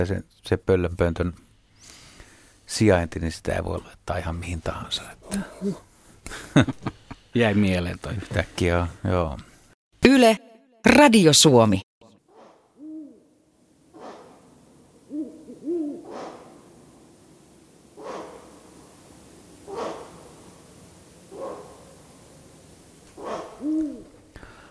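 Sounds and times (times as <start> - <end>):
speech: 0.0 - 1.4, 2.7 - 11.9
Ural owl breathy huffs: 1.7 - 2.6, 14.0 - 14.5, 15.1 - 16.6, 23.2 - 24.7
laughter: 6.3 - 7.3
Ural owl hooting: 12.3 - 17.2, 17.9 - 24.7.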